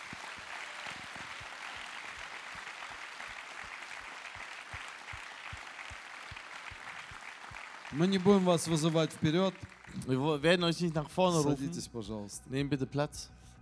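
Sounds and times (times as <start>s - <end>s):
audience applause: 0.0s - 10.7s
speech: 7.9s - 13.4s.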